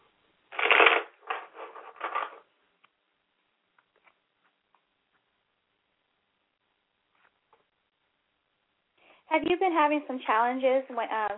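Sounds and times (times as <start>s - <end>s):
tarot cards being shuffled: 0.5s - 2.4s
speech: 9.3s - 11.3s.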